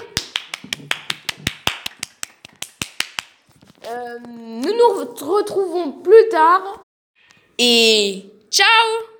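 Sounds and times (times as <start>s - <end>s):
applause: 0.2s - 3.3s
speech: 3.9s - 6.8s, 7.6s - 9.1s.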